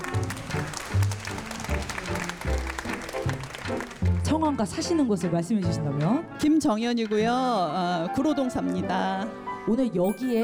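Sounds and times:
audience applause: 0:00.0 - 0:04.2
speech: 0:04.3 - 0:10.4.

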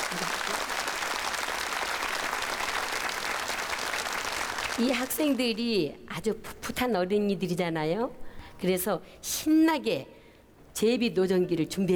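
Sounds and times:
audience applause welcoming performers to stage: 0:00.0 - 0:05.0
speech: 0:04.8 - 0:10.2, 0:10.8 - 0:11.9.

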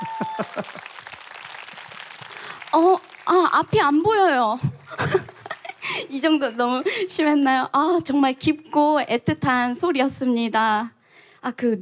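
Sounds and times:
audience applause: 0:00.0 - 0:04.0, 0:04.7 - 0:07.1
speech: 0:03.5 - 0:05.2, 0:06.1 - 0:11.8.

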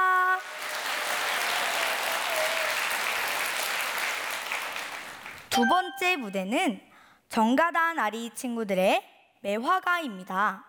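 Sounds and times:
audience applause: 0:00.1 - 0:05.5
speech: 0:05.6 - 0:10.6.

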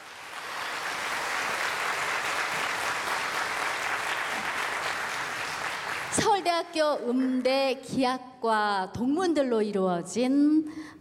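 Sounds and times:
audience applause: 0:00.0 - 0:06.3
speech: 0:06.3 - 0:10.9.

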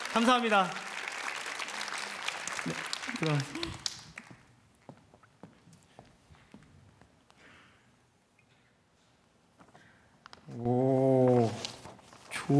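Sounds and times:
audience applause: 0:00.0 - 0:04.5
speech: 0:00.2 - 0:00.8, 0:02.6 - 0:03.9, 0:10.6 - 0:11.1.

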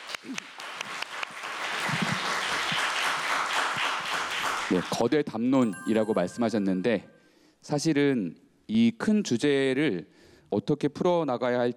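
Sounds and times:
audience applause: 0:00.0 - 0:05.0
speech: 0:04.7 - 0:11.7.

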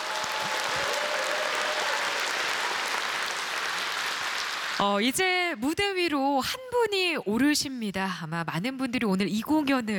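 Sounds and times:
audience applause: 0:00.0 - 0:04.8
speech: 0:04.8 - 0:09.9.

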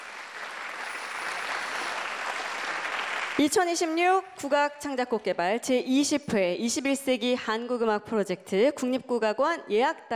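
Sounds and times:
audience applause: 0:00.0 - 0:03.4
speech: 0:03.4 - 0:10.1.

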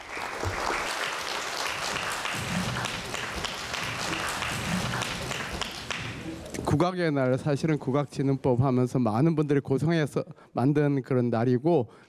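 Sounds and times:
audience applause: 0:00.0 - 0:06.7
speech: 0:06.8 - 0:12.0.

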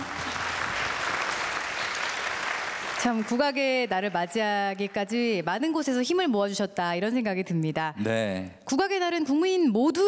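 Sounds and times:
audience applause: 0:00.0 - 0:04.9
speech: 0:03.0 - 0:10.0.

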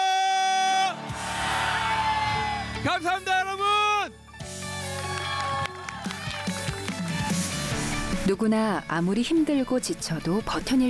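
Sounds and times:
audience yelling and cheering at a live show: 0:00.0 - 0:04.0, 0:04.8 - 0:07.7
performer long drawn-out shout: 0:00.0 - 0:04.1
speech: 0:08.3 - 0:10.8.

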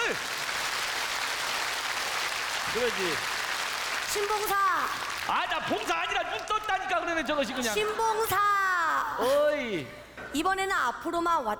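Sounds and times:
audience applause at a live performance: 0:00.0 - 0:06.0
speech: 0:02.8 - 0:03.4, 0:04.1 - 0:11.5.

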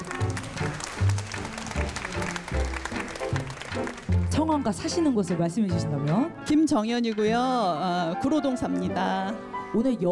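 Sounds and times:
audience applause: 0:00.0 - 0:04.2
speech: 0:03.8 - 0:10.1.

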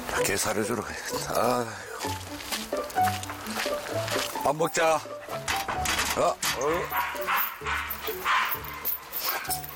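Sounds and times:
speech: 0:00.2 - 0:03.4, 0:04.4 - 0:05.4, 0:06.2 - 0:08.4
dog yipping and barking: 0:06.9 - 0:09.6.

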